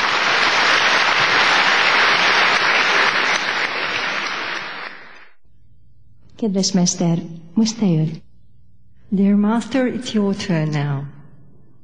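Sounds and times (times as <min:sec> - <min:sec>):
audience applause welcoming a visiting master at an evening event: 0:00.0 - 0:05.3
speech: 0:06.4 - 0:08.3, 0:09.1 - 0:11.2.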